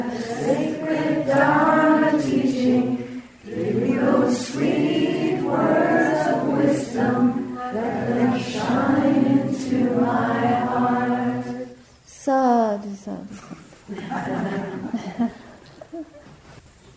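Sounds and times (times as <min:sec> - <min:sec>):
gospel chant: 0:00.0 - 0:12.0
laughter: 0:13.3 - 0:16.3.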